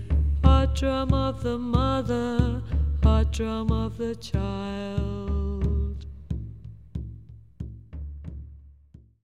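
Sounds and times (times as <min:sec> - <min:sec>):
drumbeats: 0:00.0 - 0:09.2.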